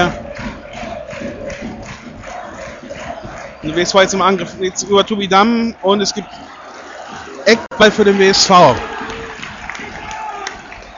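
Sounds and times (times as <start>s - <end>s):
football crowd roaring at a WSV match: 0.0s - 10.9s
scattered shouts: 0.0s - 10.9s
speech: 3.7s - 6.5s, 7.4s - 8.9s.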